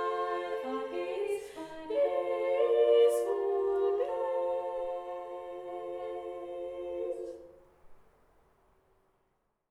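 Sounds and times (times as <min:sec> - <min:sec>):
upper voices singing: 0:00.0 - 0:07.6.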